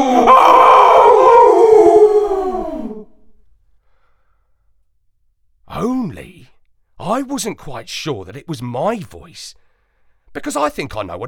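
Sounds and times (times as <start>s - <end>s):
dog howling: 0.0s - 3.2s
speech: 7.1s - 9.6s, 10.3s - 11.2s.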